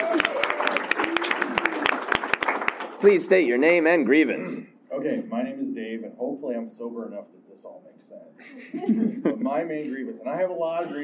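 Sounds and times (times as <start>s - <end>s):
small group applauding: 0.0s - 3.3s
speech: 3.0s - 11.0s.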